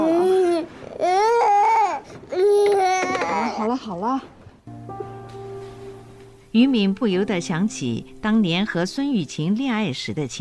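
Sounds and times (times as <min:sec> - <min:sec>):
young child crying and fussing: 0:00.0 - 0:03.7
speech: 0:03.8 - 0:04.4, 0:06.6 - 0:10.3.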